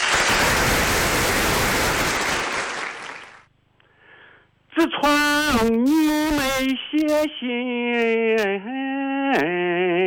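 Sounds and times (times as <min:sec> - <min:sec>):
audience applause: 0:00.0 - 0:03.5
speech: 0:04.8 - 0:10.0.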